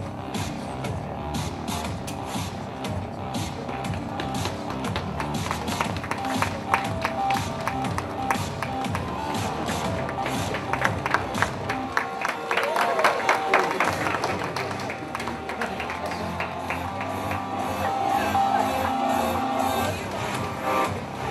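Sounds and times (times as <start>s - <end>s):
murmur of voices: 0.0s - 21.2s
crowd applause: 4.2s - 18.0s.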